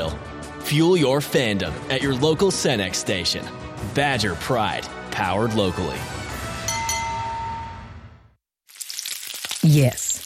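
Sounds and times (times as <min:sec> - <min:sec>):
speech: 0:00.0 - 0:06.2, 0:09.7 - 0:10.0
bacon sizzling: 0:08.6 - 0:10.2.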